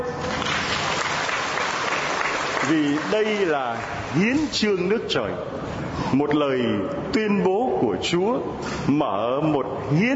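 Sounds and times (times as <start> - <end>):
church congregation clapping at a sermon leader's urging: 0.0 - 4.7
speech: 2.7 - 10.1.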